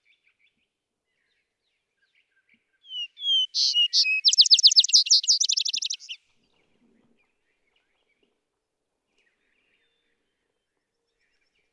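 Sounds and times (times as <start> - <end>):
vesper sparrow singing: 2.9 - 6.2.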